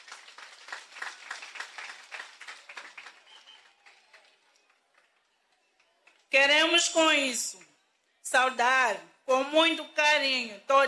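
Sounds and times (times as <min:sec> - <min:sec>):
applause for the children: 0:00.0 - 0:06.4
speech: 0:06.3 - 0:07.6, 0:08.3 - 0:10.8.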